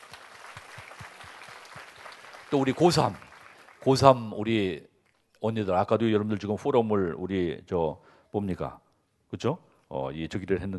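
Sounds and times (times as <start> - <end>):
audience applause: 0.0 - 4.2
speech: 2.5 - 10.7.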